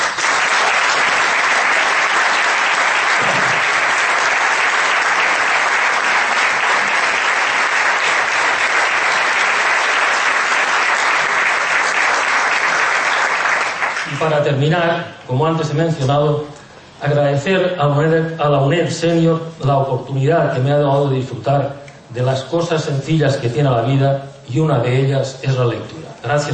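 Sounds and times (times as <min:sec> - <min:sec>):
audience applause: 0:00.0 - 0:14.3
speech: 0:14.5 - 0:26.5.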